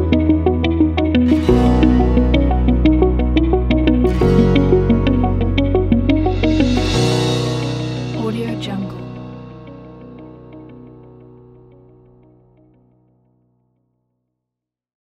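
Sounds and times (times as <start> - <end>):
uplifting commercial company background music: 0.0 - 11.0.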